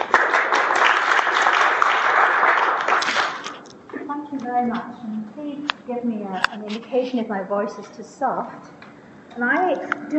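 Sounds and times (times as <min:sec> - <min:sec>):
audience applause welcoming a speaker to the stage: 0:00.0 - 0:03.6
speech: 0:04.5 - 0:08.8, 0:09.4 - 0:10.1.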